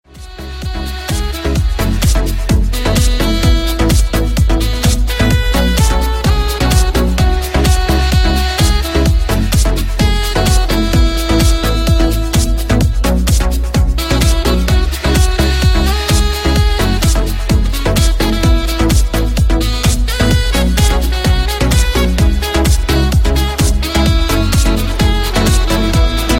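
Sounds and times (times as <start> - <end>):
saxophone ringtone: 0.4 - 13.0, 14.0 - 26.3.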